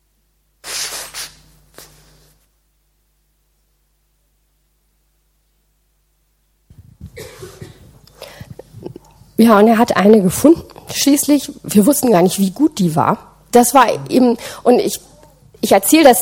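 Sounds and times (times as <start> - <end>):
person blowing nose: 0.6 - 2.3
speech: 9.4 - 16.2.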